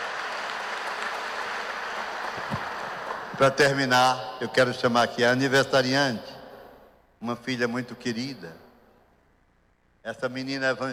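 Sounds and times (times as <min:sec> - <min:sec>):
applause for the seminarians and vocation candidates: 0:00.0 - 0:03.4
speech: 0:03.4 - 0:06.3, 0:07.2 - 0:08.6, 0:10.0 - 0:10.9.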